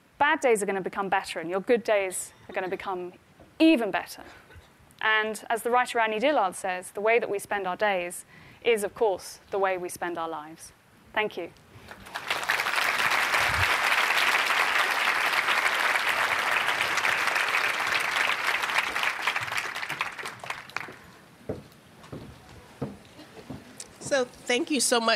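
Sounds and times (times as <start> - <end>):
speech: 0.3 - 4.4, 5.0 - 12.1, 24.2 - 25.1
audience applause: 11.8 - 21.2.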